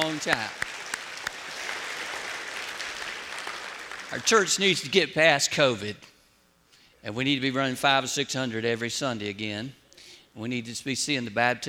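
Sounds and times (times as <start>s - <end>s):
church congregation applauding after a choir and orchestra performance: 0.0s - 4.8s
speech: 0.2s - 0.6s, 4.1s - 6.1s, 7.0s - 9.8s, 10.4s - 11.6s.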